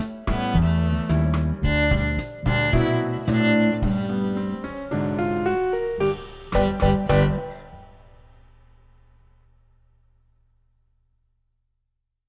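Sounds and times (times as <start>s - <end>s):
rumba music: 0.0s - 8.1s.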